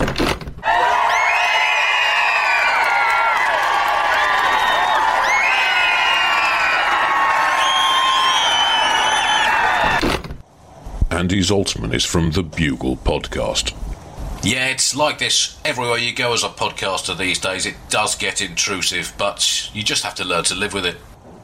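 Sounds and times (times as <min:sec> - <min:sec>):
large crowd of fans cheering and screaming excitedly: 0:00.6 - 0:10.0
speech: 0:11.3 - 0:21.1.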